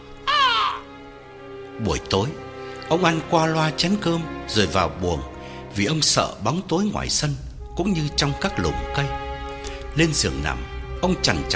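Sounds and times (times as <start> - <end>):
crow cawing: 0.2 - 1.0
speech: 1.8 - 9.2, 10.0 - 11.5.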